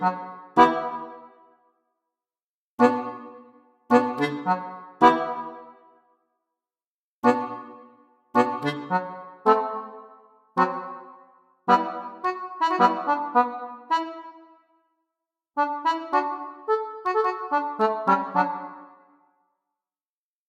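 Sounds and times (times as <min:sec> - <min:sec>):
quiet nostalgic accordion solo: 0:00.0 - 0:01.4, 0:02.8 - 0:05.8, 0:07.2 - 0:14.6, 0:15.6 - 0:19.1.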